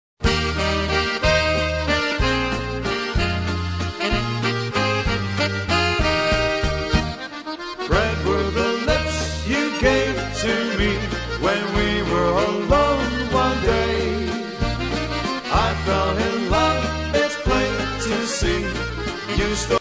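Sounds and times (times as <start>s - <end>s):
waltz music: 0.2s - 19.8s.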